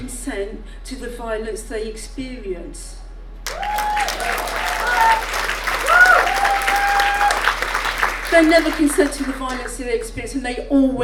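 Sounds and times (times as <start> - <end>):
speech: 0.2 - 3.0, 8.3 - 11.0
crowd clapping: 3.4 - 10.1
cheering voices: 3.5 - 9.7.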